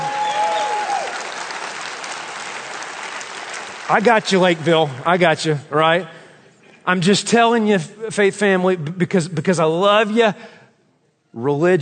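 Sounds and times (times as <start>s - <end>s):
audience clapping: 0.0s - 5.6s
speech: 3.9s - 6.2s, 6.8s - 10.6s, 11.3s - 11.8s.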